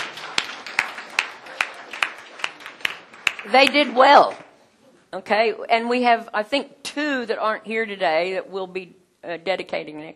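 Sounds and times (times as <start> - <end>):
audience clapping for the parents: 0.0 - 4.6
speech: 3.4 - 4.4, 5.1 - 10.1.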